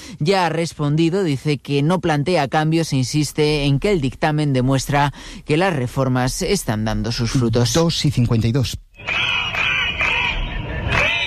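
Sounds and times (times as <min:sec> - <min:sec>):
speech: 0:00.1 - 0:09.6
protesting teachers in Catalonia chanting: 0:09.0 - 0:11.2.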